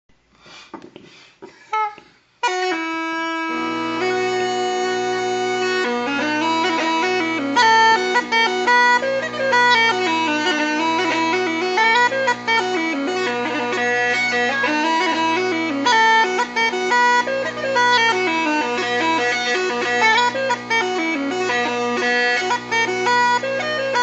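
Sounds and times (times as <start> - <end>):
uilleann pipes drone: 2.5 - 24.0.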